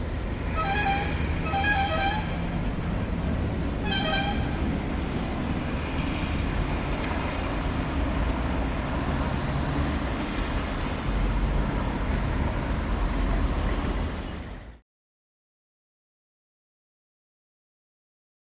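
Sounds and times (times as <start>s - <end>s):
city traffic: 0.0s - 14.8s.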